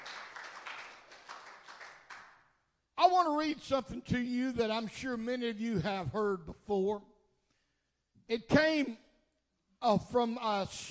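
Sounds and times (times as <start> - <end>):
crowd clapping in praise: 0.0 - 2.5
speech: 3.2 - 7.1, 8.3 - 9.0, 9.8 - 10.9.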